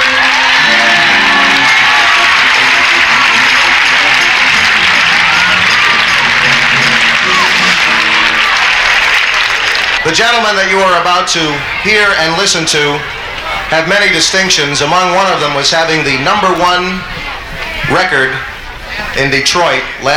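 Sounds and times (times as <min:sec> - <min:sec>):
audience applause and cheering: 0:00.0 - 0:14.2
speech: 0:10.1 - 0:17.2, 0:17.9 - 0:18.5, 0:19.1 - 0:20.1.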